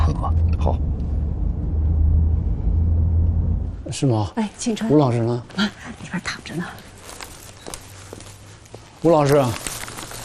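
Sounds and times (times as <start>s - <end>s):
car engine rumble while driving: 0.0s - 4.1s
speech: 0.7s - 0.9s, 3.9s - 6.9s, 9.0s - 9.7s.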